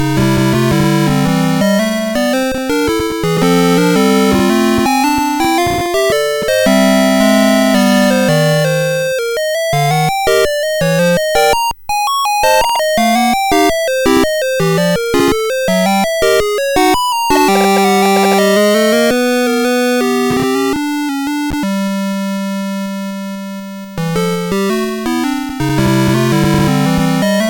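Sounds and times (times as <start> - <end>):
music box melody on SID MOS6581R4 chip: 0.0 - 22.6, 24.0 - 27.4.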